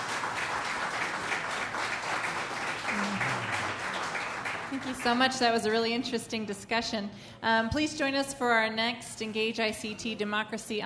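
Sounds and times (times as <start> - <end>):
audience applause for a panel: 0.0 - 5.2
speech: 4.7 - 10.8.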